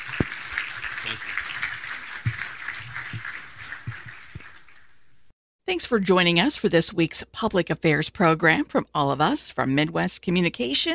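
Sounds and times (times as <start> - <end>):
audience applause: 0.0 - 4.7
speech: 1.1 - 1.3, 5.7 - 10.9.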